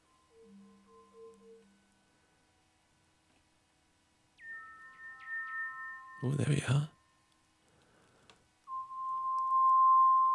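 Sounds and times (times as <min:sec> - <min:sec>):
pure sine-wave tone playing a bass line: 0:00.0 - 0:02.3, 0:04.4 - 0:07.4, 0:08.7 - 0:10.3
speech: 0:06.2 - 0:07.0.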